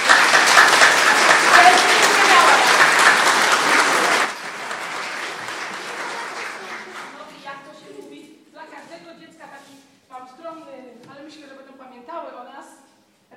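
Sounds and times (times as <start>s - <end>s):
people clapping for children: 0.0s - 7.8s.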